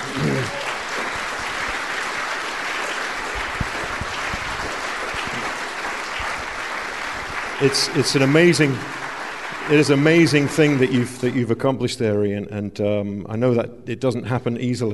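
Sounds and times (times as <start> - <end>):
audience applause: 0.0 - 11.4
speech: 7.6 - 9.0, 9.7 - 14.9.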